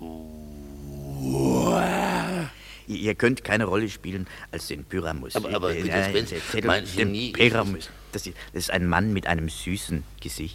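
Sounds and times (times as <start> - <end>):
man imitating lion roar: 0.0 - 2.6
speech: 2.9 - 10.5.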